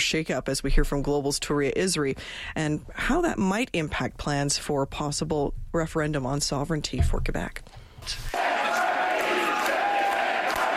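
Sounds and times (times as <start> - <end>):
speech: 0.0 - 8.4
crowd chanting at PQ headquarters: 8.3 - 10.7.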